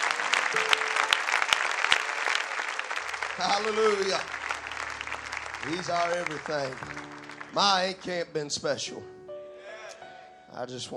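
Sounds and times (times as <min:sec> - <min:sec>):
audience hand clapping: 0:00.0 - 0:08.5
speech: 0:03.4 - 0:04.4, 0:05.6 - 0:09.1, 0:10.6 - 0:10.9.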